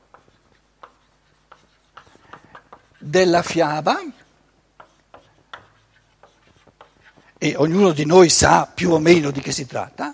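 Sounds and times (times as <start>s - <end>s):
handwriting strokes: 0.0s - 8.4s
speech: 3.0s - 4.2s, 7.6s - 10.1s.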